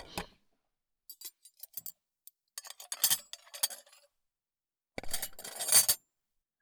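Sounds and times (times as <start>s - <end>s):
dishes being cleared from the table: 0.0s - 0.3s, 2.6s - 4.0s, 5.0s - 6.0s.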